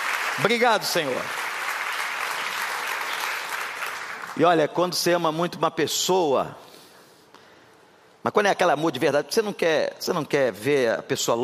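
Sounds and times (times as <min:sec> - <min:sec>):
congregation applauding in praise to God at a religious gathering: 0:00.0 - 0:04.6
speech: 0:00.4 - 0:01.4, 0:04.4 - 0:06.7, 0:08.2 - 0:11.4.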